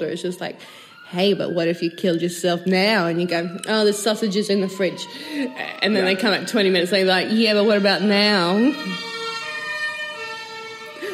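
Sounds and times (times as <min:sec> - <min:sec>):
speech: 0:00.0 - 0:09.2
fire engine siren from fire station below: 0:00.0 - 0:11.1.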